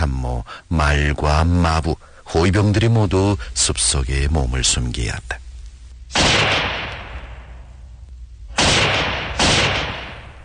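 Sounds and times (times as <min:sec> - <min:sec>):
speech: 0:00.2 - 0:05.4
gunshot: 0:06.1 - 0:07.6, 0:08.5 - 0:10.4.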